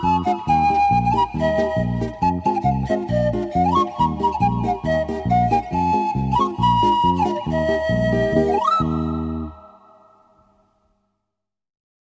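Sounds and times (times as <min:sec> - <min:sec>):
panpipe polka: 0:00.0 - 0:09.6.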